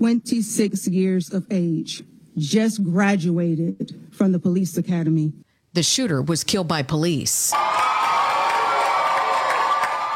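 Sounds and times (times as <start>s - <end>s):
speech: 0.0s - 8.0s
crowd in Nashville cheering after Justin Jones reinstated: 7.5s - 10.1s.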